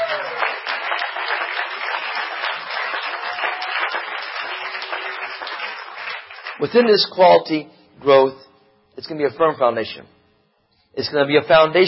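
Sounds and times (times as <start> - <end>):
audience clapping: 0.0 - 6.9
speech: 6.6 - 8.4, 9.0 - 10.2, 10.9 - 11.8.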